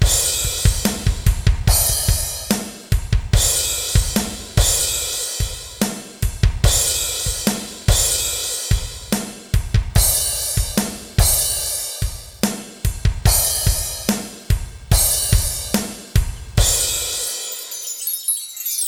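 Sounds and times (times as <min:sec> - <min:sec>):
ambient drums: 0:00.0 - 0:17.5.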